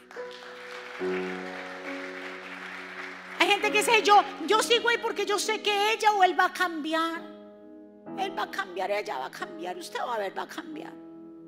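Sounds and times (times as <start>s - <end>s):
loud audience applause: 0.0s - 4.4s
speech: 1.0s - 1.6s, 3.6s - 7.3s, 8.2s - 11.0s.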